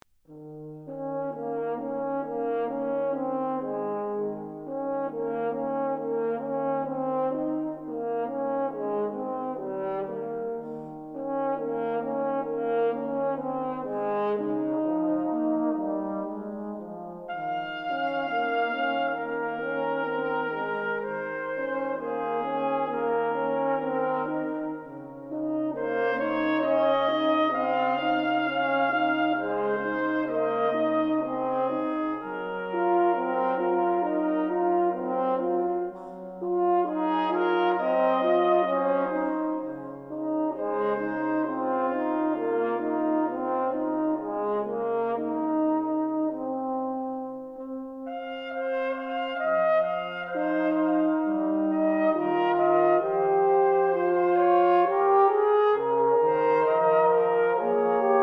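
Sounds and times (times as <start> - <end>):
brass trio playing a berceuse: 0.3 - 58.2.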